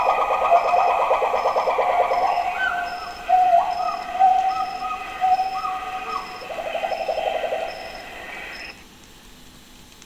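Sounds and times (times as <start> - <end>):
Pileated gibbon song: 0.0 - 7.7
faint insects humming: 0.0 - 10.0.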